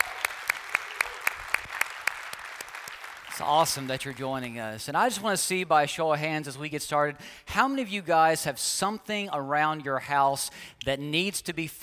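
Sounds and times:
church congregation clapping rhythmically: 0.0s - 4.6s
speech: 3.4s - 11.8s.

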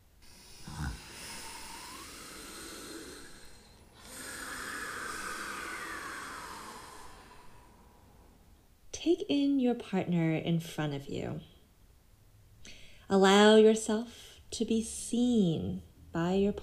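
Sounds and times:
group taking a deep full breath together during a partner exercise: 0.2s - 8.5s
speech: 9.0s - 11.5s, 13.1s - 16.6s.

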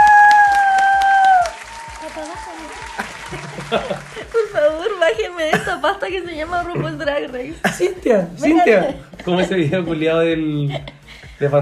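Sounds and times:
audience applause welcoming a guest: 0.0s - 5.0s
people talking and laughing: 2.0s - 11.6s
speech: 6.4s - 11.6s.

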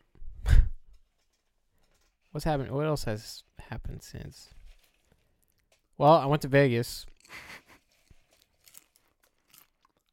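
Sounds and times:
speech: 2.3s - 4.6s, 6.0s - 7.6s
crunchy chewing and biting: 4.7s - 6.0s, 7.1s - 10.1s.

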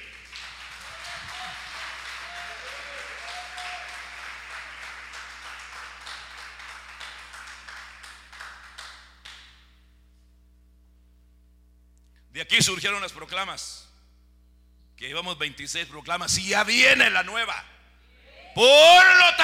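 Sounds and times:
audience applauding: 0.0s - 9.5s
speech: 12.4s - 13.9s, 15.0s - 17.7s, 18.6s - 19.4s.

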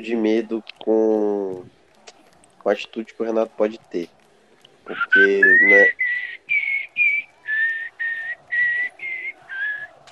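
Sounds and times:
speech: 0.0s - 1.8s, 2.6s - 4.2s, 4.9s - 6.0s
rufous-bellied thrush (sabiá) singing: 4.9s - 10.1s.

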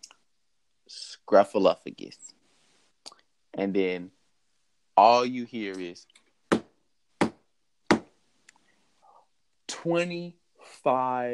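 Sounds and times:
speech: 0.9s - 2.4s, 3.6s - 4.2s, 5.0s - 6.2s, 9.8s - 11.3s
knocks on a hard surface imitating a judge's gavel: 6.5s - 8.1s.

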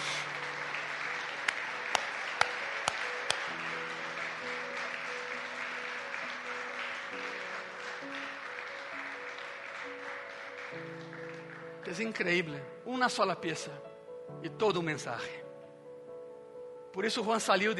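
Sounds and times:
audience applause: 0.0s - 12.2s
speech: 12.0s - 15.4s, 17.0s - 17.7s.

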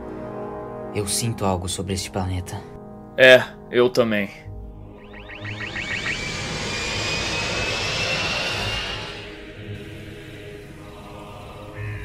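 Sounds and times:
speech: 1.0s - 4.4s
spaceship engine landing through tree branches near a swamp: 4.9s - 9.8s.

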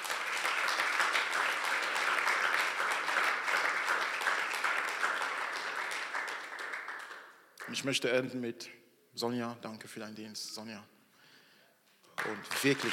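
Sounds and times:
audience applause: 0.0s - 7.7s, 12.2s - 12.9s
speech: 7.7s - 11.0s, 12.2s - 12.9s.

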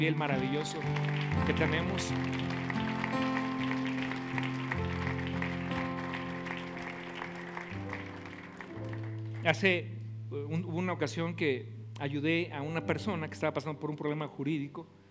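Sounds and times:
speech: 0.0s - 2.8s, 9.5s - 15.0s
audience applauding: 0.0s - 9.6s
sustained keyboard chords: 0.0s - 15.1s.

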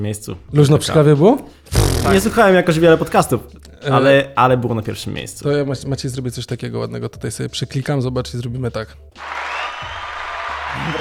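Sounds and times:
speech: 0.0s - 9.5s, 10.8s - 10.9s
crowd applause sound effect: 9.2s - 10.9s.

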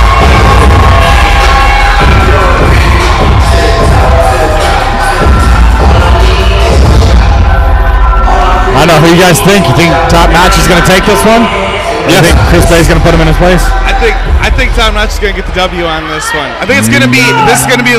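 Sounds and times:
wrestling crowd booing: 0.0s - 9.6s, 16.2s - 17.9s
speech: 9.2s - 17.9s.

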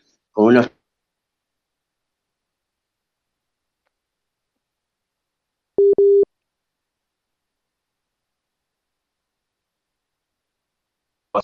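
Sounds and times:
speech: 0.4s - 0.7s
busy tone beeps after a dropped phone call: 5.8s - 6.3s.

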